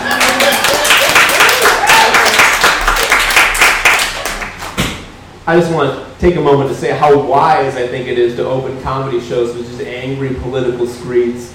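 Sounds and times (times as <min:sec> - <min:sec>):
audience applause: 0:00.0 - 0:04.8
speech: 0:05.5 - 0:11.5.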